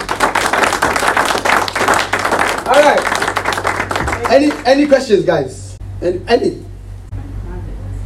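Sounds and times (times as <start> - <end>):
group clapping in rhythm at a meeting: 0.0 - 5.2
speech: 4.3 - 6.7.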